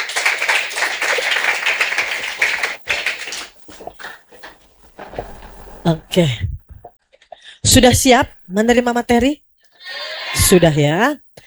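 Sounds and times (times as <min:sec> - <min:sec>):
audience clapping for a doctor about to speak: 0:00.0 - 0:06.0
speech: 0:05.8 - 0:06.5, 0:07.7 - 0:09.4, 0:10.4 - 0:11.2.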